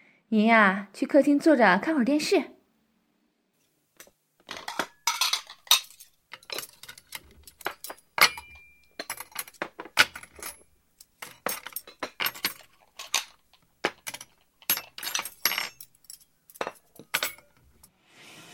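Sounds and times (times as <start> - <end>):
speech: 0.3 - 2.6
clearing bowls and chopsticks: 4.5 - 17.8.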